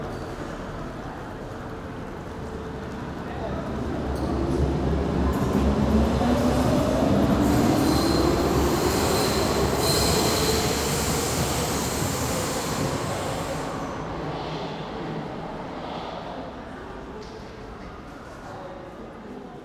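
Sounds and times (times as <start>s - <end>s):
subway tunnel station ambience: 0.0s - 19.6s.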